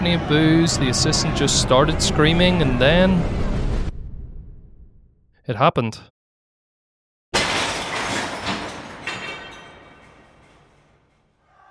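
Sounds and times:
speech: 0.0 - 3.5, 5.5 - 6.1
glass shattering from a thrown brick: 7.4 - 11.3
tinkling clattering glass shards: 7.6 - 11.1.

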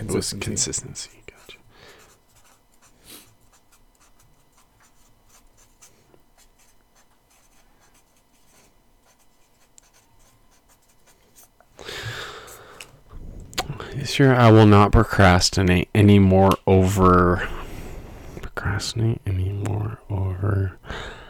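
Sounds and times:
pen scratching across paper: 0.1 - 11.6
speech: 0.2 - 1.6, 14.2 - 17.6, 18.6 - 21.2.

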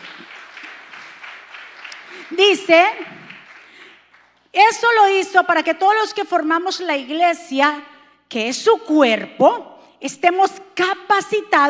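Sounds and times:
crowd applause: 0.0 - 4.4
speech: 2.3 - 3.2, 4.5 - 11.6.

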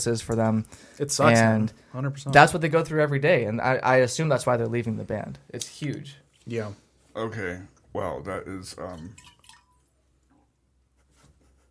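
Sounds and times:
speech: 0.0 - 9.3
cup or bowl clinking: 8.8 - 9.9.

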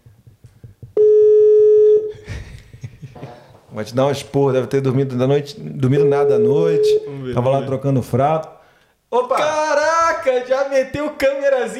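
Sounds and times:
electronic phone call ring tone: 1.0 - 2.1, 6.0 - 7.2
speech: 3.8 - 11.7.

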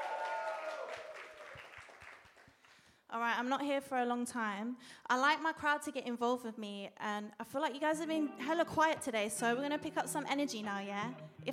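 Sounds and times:
audience applause: 0.0 - 2.4
speech: 3.1 - 11.5.

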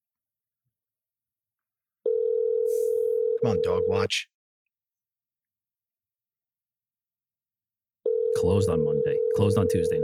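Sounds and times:
telephone ringing tone: 2.0 - 4.0, 8.0 - 10.0
speech: 3.4 - 4.3, 8.4 - 10.0.

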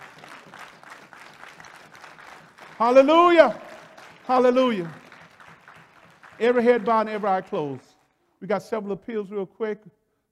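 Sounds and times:
audience clapping hands in praise: 0.0 - 8.2
speech: 2.8 - 3.6, 4.3 - 5.0, 6.4 - 10.0.

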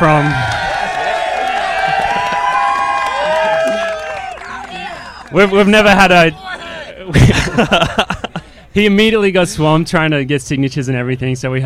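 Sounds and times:
speech: 0.0 - 0.5, 5.3 - 6.5, 7.1 - 8.2, 8.8 - 11.6
live studio audience cheering wildly for a special guest at a Penn Relays show: 0.0 - 7.1
laughter: 0.7 - 4.0, 6.4 - 8.7.

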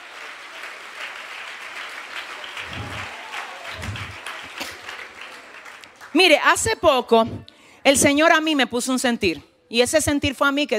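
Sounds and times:
audience applause: 0.0 - 6.2
speech: 6.2 - 10.7.

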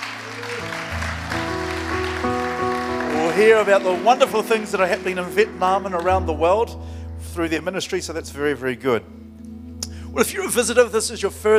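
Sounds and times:
church congregation clapping to welcome guests during a Sunday morning service: 0.0 - 6.4
sustained keyboard chords: 0.0 - 11.5
speech: 3.4 - 9.2, 10.1 - 11.5.

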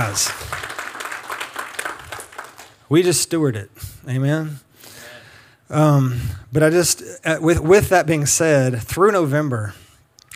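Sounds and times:
speech: 0.0 - 0.5, 2.9 - 4.6, 5.7 - 9.8
audience round of applause: 0.0 - 2.8.

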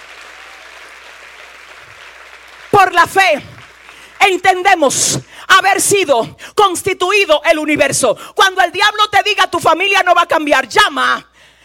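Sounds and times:
church congregation applauding during a service: 0.0 - 5.0
speech: 2.9 - 3.5, 4.2 - 11.3.

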